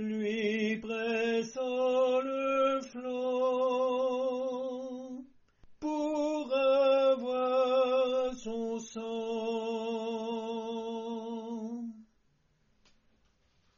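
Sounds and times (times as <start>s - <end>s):
tenor singing a French song: 0.0s - 12.1s.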